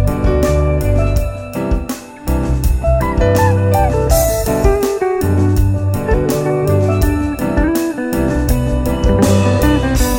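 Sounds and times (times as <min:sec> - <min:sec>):
relaxing calm romantic Caribbean music loop: 0:00.0 - 0:10.1.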